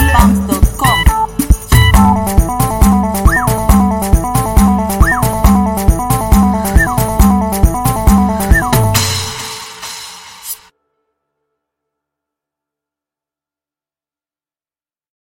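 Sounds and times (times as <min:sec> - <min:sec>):
music beat: 0:00.0 - 0:10.7.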